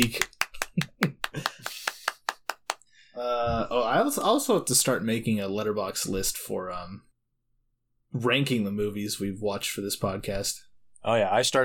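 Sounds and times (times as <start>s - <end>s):
speech: 0.0s - 0.3s, 3.2s - 7.1s, 8.1s - 11.6s
hand clapping: 0.0s - 2.9s.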